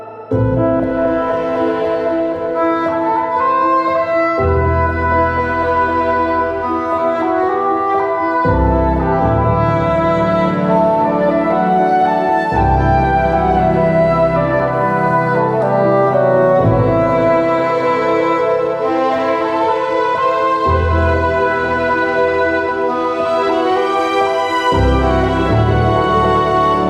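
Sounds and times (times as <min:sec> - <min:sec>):
sweet piano: 0:00.0 - 0:26.8.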